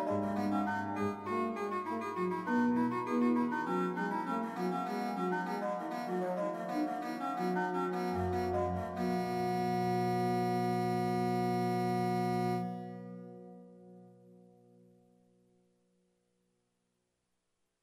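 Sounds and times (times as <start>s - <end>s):
organ: 0.0s - 13.4s.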